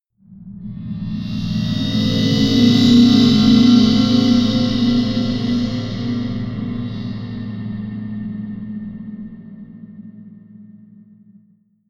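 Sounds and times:
rumble: 0.3s - 11.5s
metallic whoosh: 0.8s - 8.3s.

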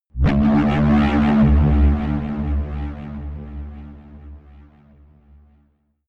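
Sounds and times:
electronic growl: 0.2s - 4.2s.

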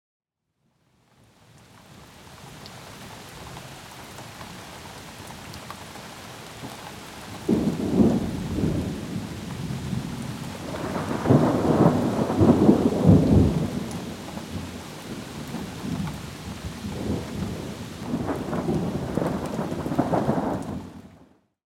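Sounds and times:
rain: 0.7s - 21.5s
thunder: 7.4s - 21.2s.

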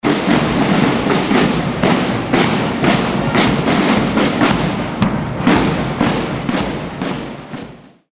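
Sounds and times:
folklore military drums: 0.0s - 8.1s.

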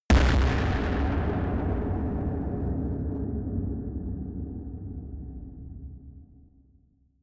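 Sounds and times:
distorted explosions: 0.1s - 5.0s.

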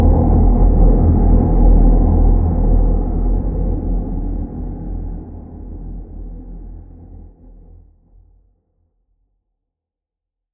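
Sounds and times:
low stealth drone: 0.0s - 7.4s.

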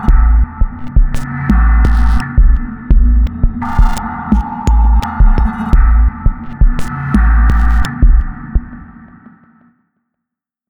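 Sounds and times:
dark electronic beat sequence: 0.0s - 9.3s.

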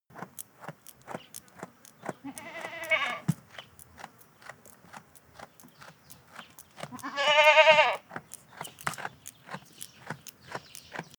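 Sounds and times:
chewing clicks: 0.2s - 11.1s
goat bleating: 2.2s - 3.4s, 6.8s - 8.2s.

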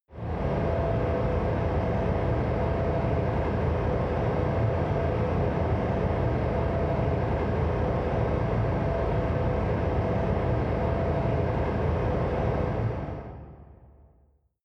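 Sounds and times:
factory hall ambience: 0.2s - 13.8s.

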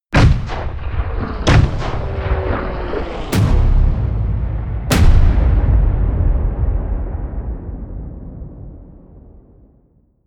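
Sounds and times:
air strike: 1.5s - 9.6s.

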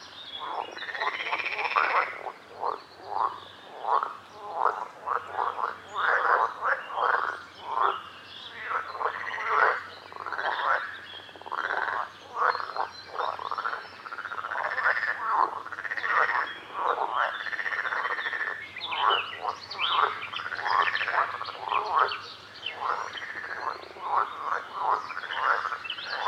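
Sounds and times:
frog chorus croaking: 0.0s - 26.2s.

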